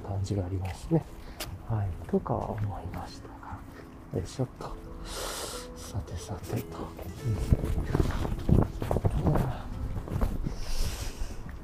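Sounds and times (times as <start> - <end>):
speech: 0.2 - 5.2, 5.9 - 9.5
wind gusts buffeting the microphone outdoors: 7.2 - 11.6.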